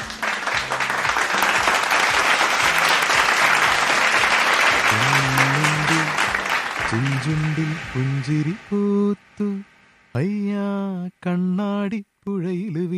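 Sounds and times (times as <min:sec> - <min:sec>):
audience applause for people who answered a song quiz: 0:00.0 - 0:08.6
speech: 0:07.0 - 0:12.9.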